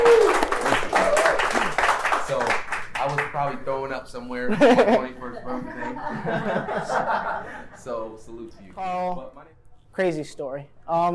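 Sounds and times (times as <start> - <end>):
crowd clapping: 0.0 - 3.6
speech: 3.5 - 11.1
laughter: 4.5 - 8.1.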